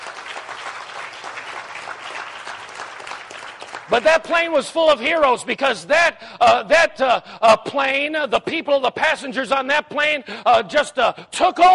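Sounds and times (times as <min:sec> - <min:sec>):
audience applause: 0:00.0 - 0:04.4
speech: 0:03.9 - 0:11.7.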